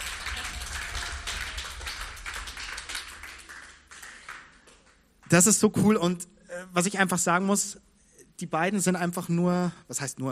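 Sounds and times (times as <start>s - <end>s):
audience applause: 0.0s - 5.1s
speech: 5.3s - 10.3s.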